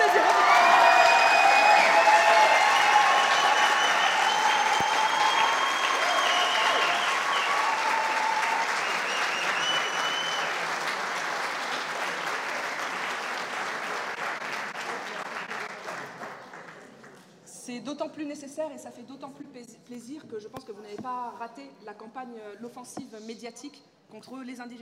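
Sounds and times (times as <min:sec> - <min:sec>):
audience applauding: 0:00.0 - 0:17.2
speech: 0:18.2 - 0:24.8.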